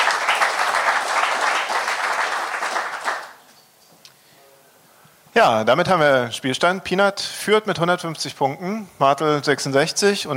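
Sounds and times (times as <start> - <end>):
audience applause: 0.0 - 3.4
speech: 5.4 - 10.3.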